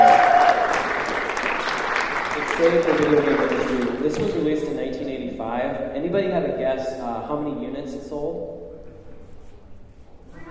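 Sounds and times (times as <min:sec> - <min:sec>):
audience round of applause: 0:00.0 - 0:04.2
speech: 0:02.6 - 0:08.6.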